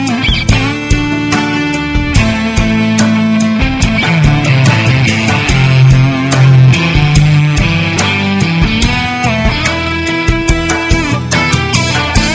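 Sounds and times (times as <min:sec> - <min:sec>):
solo guitar: 0:00.0 - 0:12.3.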